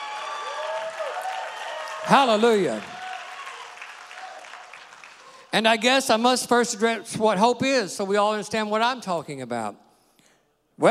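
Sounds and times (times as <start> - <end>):
audience clapping: 0.0 - 5.8
speech: 2.0 - 2.9, 5.5 - 9.8.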